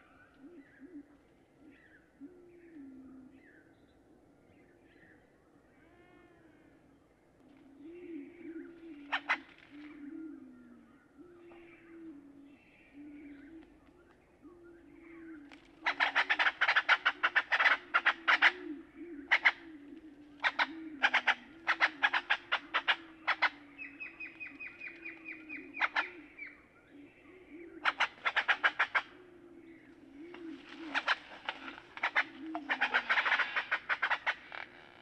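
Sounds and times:
Great-tailed Grackle calling: 0:07.8 - 0:10.2, 0:14.8 - 0:34.9.

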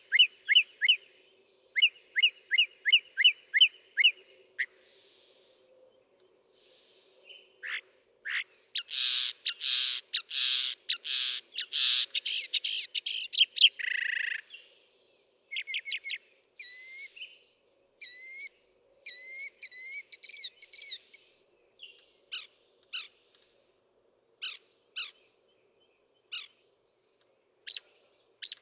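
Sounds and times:
northern mockingbird song: 0:00.0 - 0:05.8, 0:07.0 - 0:21.2, 0:24.4 - 0:25.5, 0:26.2 - 0:26.6.

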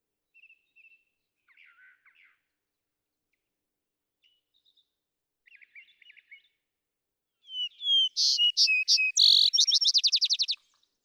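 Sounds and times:
Vesper sparrow singing whistled notes, chips and ringing trill: 0:07.5 - 0:10.6
quiet chattering twitter: 0:07.5 - 0:10.6.

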